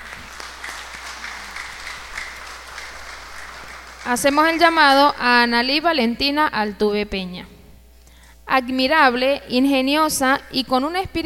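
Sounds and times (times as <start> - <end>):
audience applause: 0.0 - 5.0
speech: 4.1 - 7.5, 8.5 - 11.2.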